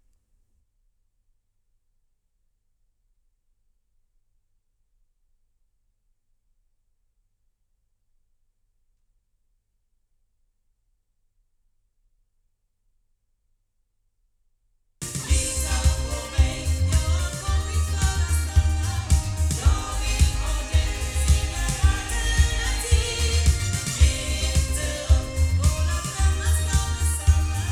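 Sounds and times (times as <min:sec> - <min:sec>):
omni loudspeakers sound: 0:15.0 - 0:27.6.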